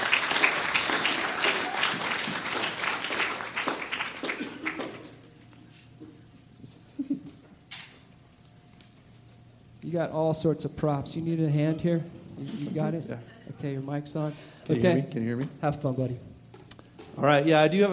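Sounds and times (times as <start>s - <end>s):
church congregation clapping to welcome a guest speaker: 0.0s - 5.3s
speech: 9.9s - 16.3s, 17.2s - 17.9s.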